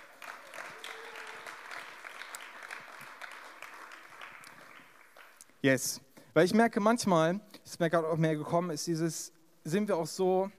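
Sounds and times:
group clapping: 0.0s - 5.6s
speech: 5.6s - 10.5s.

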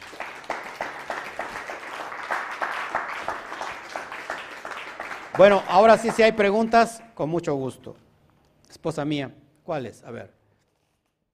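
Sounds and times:
audience applause: 0.0s - 6.8s
speech: 5.4s - 8.0s, 8.8s - 10.4s.

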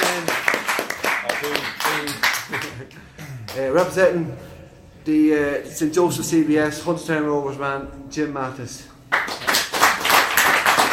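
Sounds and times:
audience clapping: 0.0s - 4.0s, 9.1s - 10.9s
speech: 2.5s - 8.9s.

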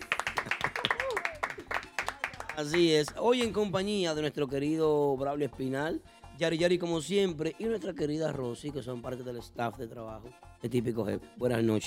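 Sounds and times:
applause: 0.0s - 3.6s
speech: 2.6s - 11.8s.

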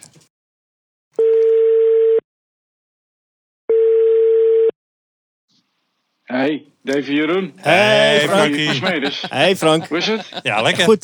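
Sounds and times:
telephone ringback tone: 1.2s - 2.2s, 3.7s - 4.7s
speech: 6.3s - 11.0s
laughter: 7.6s - 11.0s.

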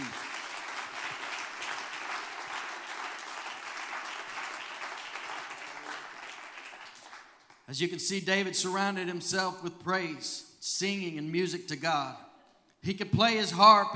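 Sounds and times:
crowd audience applauding: 0.0s - 7.7s
speech: 7.7s - 13.9s.

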